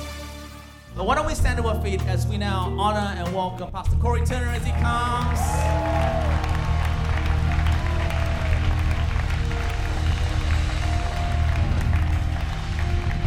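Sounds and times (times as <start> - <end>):
speech: 1.0 - 6.0
audience applause: 4.6 - 13.2.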